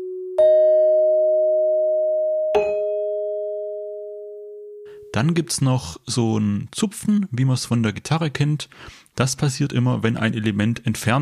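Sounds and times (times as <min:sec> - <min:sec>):
bell-like chimes: 0:00.4 - 0:04.1
speech: 0:05.2 - 0:11.2.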